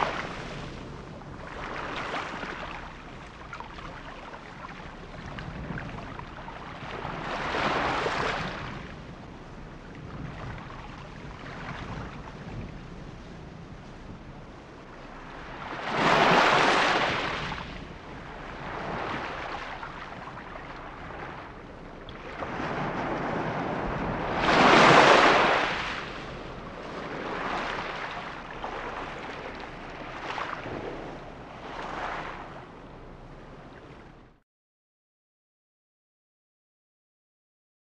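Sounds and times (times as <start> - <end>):
water lapping: 0.0 - 8.6, 15.1 - 34.3.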